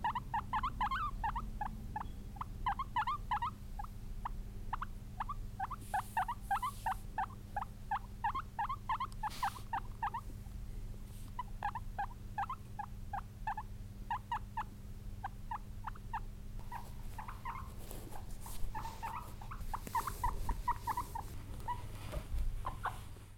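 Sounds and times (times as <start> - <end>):
guinea pig squeaking: 0.0 - 10.3, 11.1 - 23.1
soft rustles: 5.8 - 7.1, 16.6 - 23.3.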